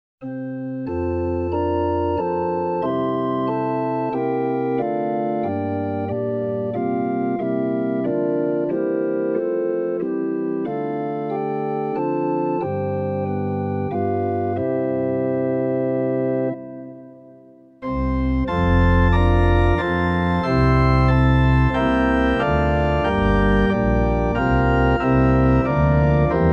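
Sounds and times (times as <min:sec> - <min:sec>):
organ: 0:00.2 - 0:26.5.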